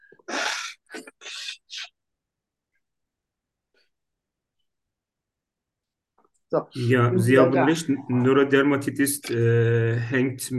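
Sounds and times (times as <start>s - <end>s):
person blowing nose: 0.3s - 1.4s
speech: 6.5s - 10.5s.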